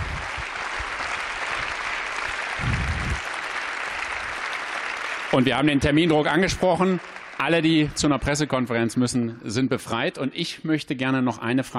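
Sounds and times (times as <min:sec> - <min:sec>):
audience applause: 0:00.0 - 0:08.9
speech: 0:05.4 - 0:11.7.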